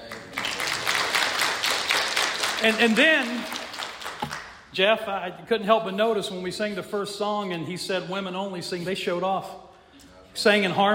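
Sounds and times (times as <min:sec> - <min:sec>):
audience applauding: 0:00.0 - 0:04.6
speech: 0:02.6 - 0:03.6, 0:04.8 - 0:09.7, 0:10.4 - 0:10.9.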